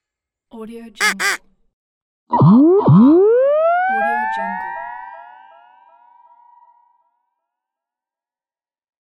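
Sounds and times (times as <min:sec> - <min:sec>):
cartoon sound effects: 0:01.0 - 0:01.4, 0:02.3 - 0:06.7.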